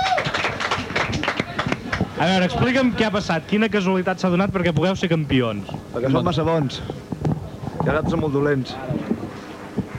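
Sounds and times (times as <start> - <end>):
audience applause for the champions: 0.0 - 2.0
speech: 2.2 - 7.0, 7.8 - 9.1.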